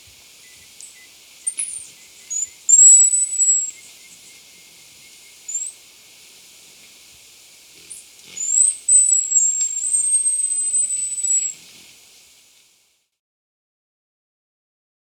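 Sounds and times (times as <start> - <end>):
Barred Fruiteater calling in South America: 0.0 - 12.0.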